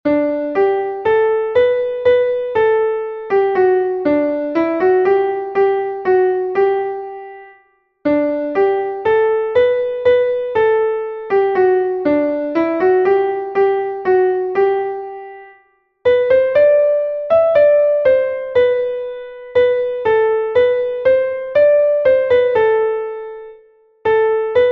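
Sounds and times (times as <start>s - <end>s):
piano: 0.0s - 24.6s.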